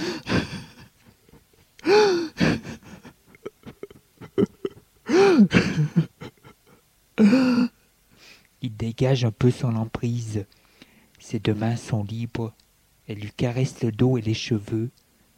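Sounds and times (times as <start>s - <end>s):
man crying and sobbing: 0.0s - 7.8s
speech: 7.2s - 7.7s, 8.8s - 10.6s, 11.3s - 15.0s.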